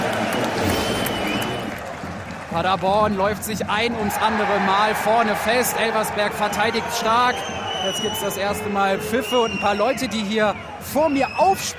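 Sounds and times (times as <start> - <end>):
football crowd cheering after Fürth scores for a 1-0 lead: 0.0 - 11.7
speech: 2.5 - 11.7.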